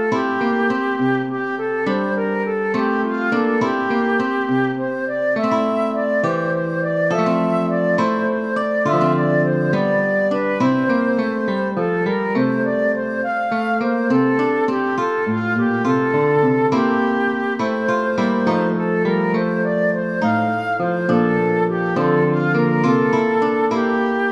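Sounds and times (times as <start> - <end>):
flute: 0.0 - 24.3
guitar: 0.0 - 24.3.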